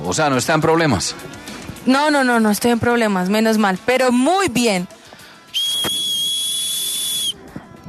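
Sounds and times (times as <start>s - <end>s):
speech: 0.1s - 5.0s
emergency alarm whistle: 5.6s - 7.4s.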